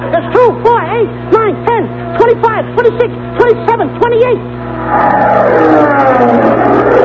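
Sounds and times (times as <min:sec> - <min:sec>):
speech: 0:00.1 - 0:01.7, 0:02.6 - 0:06.4
bees buzzing: 0:04.6 - 0:07.0.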